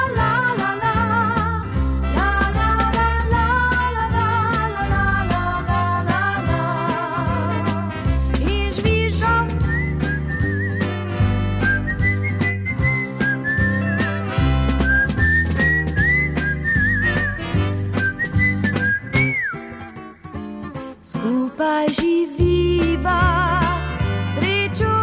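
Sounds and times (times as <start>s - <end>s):
rhythmic instrumental accompaniment: 0.0s - 25.0s
man whistling a little tune: 9.6s - 20.4s.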